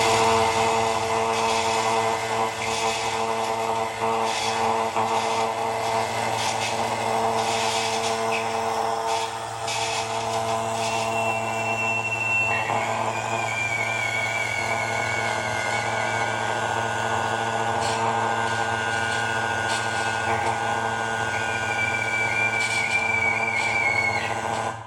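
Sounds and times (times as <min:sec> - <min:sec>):
galena mineral crystal oscillating electronically: 0:00.0 - 0:24.4.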